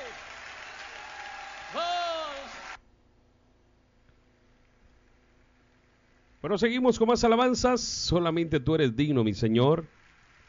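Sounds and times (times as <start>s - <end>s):
audience clapping: 0.0s - 2.8s, 9.9s - 10.4s
speech: 1.7s - 1.9s, 6.4s - 10.0s
person calling out: 1.8s - 2.5s.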